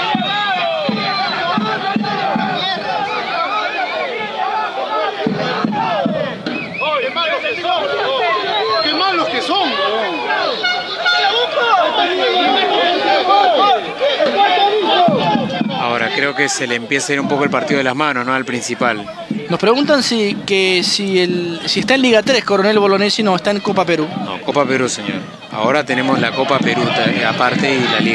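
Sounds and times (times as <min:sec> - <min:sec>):
football crowd at a Copa Perú match shouting and jeering at a foul: 0:00.0 - 0:28.1
speech: 0:16.2 - 0:28.1.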